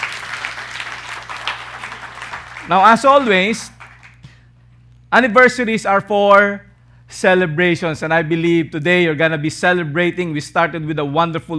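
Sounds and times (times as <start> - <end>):
audience applause at a church anniversary service: 0.0 - 4.2
speech: 2.7 - 3.8, 5.1 - 11.5.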